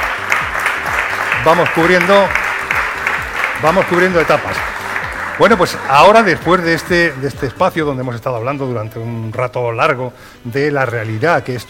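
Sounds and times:
audience applause at a live event: 0.0 - 7.8
speech: 1.4 - 2.4, 3.6 - 4.8, 5.4 - 11.6.

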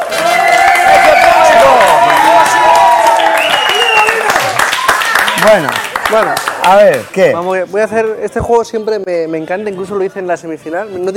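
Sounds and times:
audience applause: 0.0 - 7.2
speech: 5.4 - 11.1.

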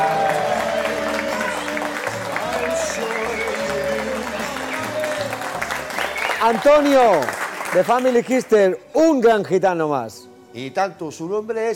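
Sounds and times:
studio audience applause: 0.0 - 8.6
speech: 6.4 - 11.7.

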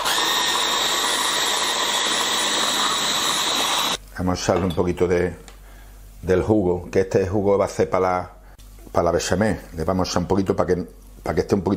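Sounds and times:
blender grinding vegetables: 0.0 - 4.0
speech: 4.2 - 5.5, 6.2 - 11.7.

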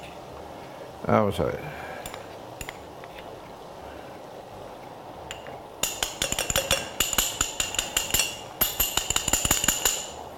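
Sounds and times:
speech: 1.0 - 1.9
spoon clinking against a glass while stirring cornstarch in water: 5.3 - 10.2.

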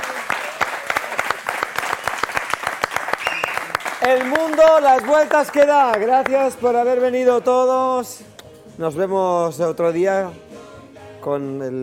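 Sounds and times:
audience applause: 0.0 - 7.1
speech: 4.0 - 10.5, 11.2 - 11.8.

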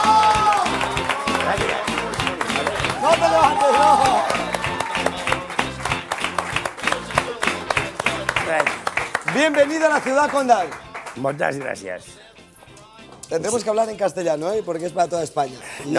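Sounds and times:
audience applause: 0.0 - 11.7
speech: 9.5 - 12.2, 13.3 - 15.9.

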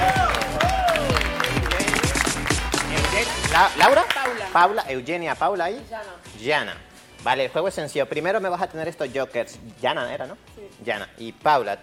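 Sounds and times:
audience applause: 0.0 - 4.8
speech: 3.6 - 11.8.

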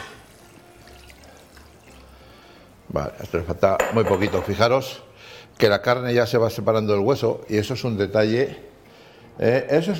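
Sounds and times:
water poured into a pot of cooking chicken: 0.0 - 3.5
speech: 2.9 - 8.7, 9.4 - 9.9.

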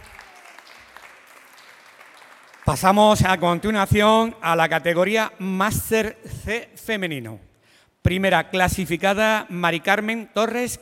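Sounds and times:
audience applause: 0.0 - 2.9
speech: 2.7 - 10.7.

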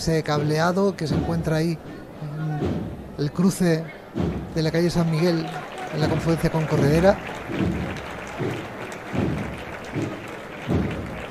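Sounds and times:
speech: 0.0 - 8.6
crowd applauding the float bearers: 4.6 - 11.2.

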